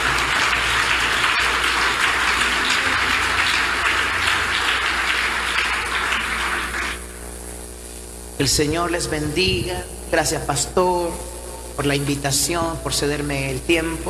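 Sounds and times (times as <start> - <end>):
audience applause: 0.0 - 7.2
speech: 8.4 - 14.0.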